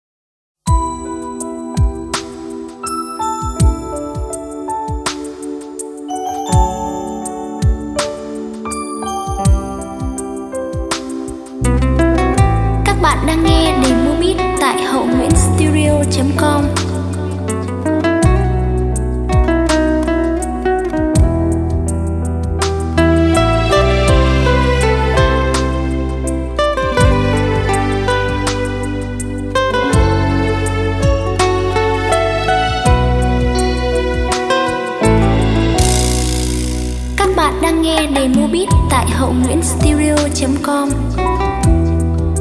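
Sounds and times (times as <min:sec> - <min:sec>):
music beat playback: 0:00.7 - 0:42.3.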